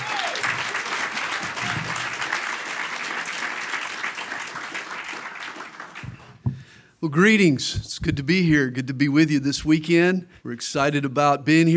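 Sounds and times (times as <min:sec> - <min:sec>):
audience applause welcoming a guest speaker: 0:00.0 - 0:06.4
speech: 0:07.0 - 0:11.7.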